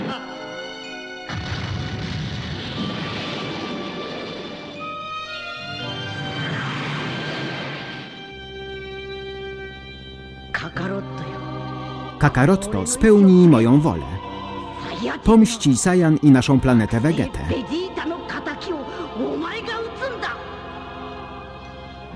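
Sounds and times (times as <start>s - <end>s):
explosions: 1.3s - 4.9s, 6.2s - 8.2s
speech: 10.8s - 11.4s, 12.2s - 14.3s, 15.1s - 18.1s.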